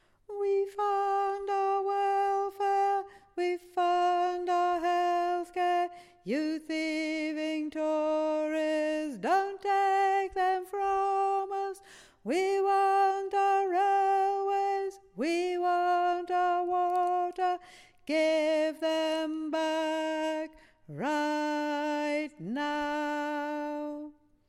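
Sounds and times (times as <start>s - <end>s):
tenor singing: 0.3s - 24.3s.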